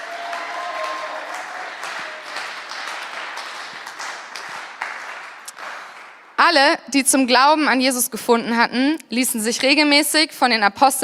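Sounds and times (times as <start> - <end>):
audience applause: 0.0 - 6.4
speech: 6.5 - 11.0.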